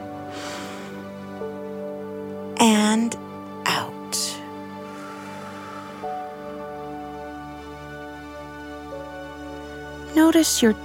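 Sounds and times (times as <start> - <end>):
deep inhale during a guided relaxation body check: 0.3 - 1.1, 4.5 - 7.9
speech: 2.6 - 3.3, 10.3 - 10.8
low hum: 4.4 - 8.6.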